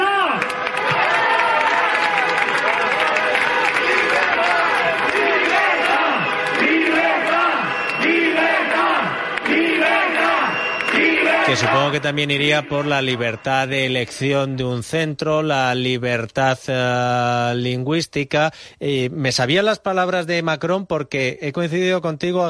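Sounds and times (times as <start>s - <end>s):
protest crowd shouting chants in street: 0.5s - 14.3s
speech: 11.5s - 22.4s.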